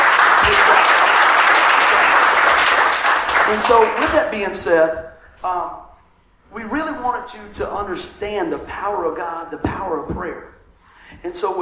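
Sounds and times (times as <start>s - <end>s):
audience hand clapping: 0.0s - 4.8s
speech: 3.5s - 5.9s, 6.5s - 10.5s, 11.1s - 11.5s.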